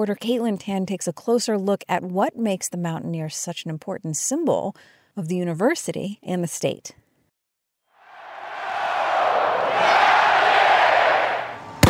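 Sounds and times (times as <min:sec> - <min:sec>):
speech: 0:00.0 - 0:07.0
West Virginia University football fans cheering: 0:08.0 - 0:11.8.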